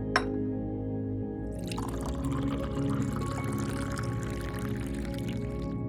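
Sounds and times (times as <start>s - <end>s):
cup clinking: 0.2s - 0.4s, 1.5s - 5.7s.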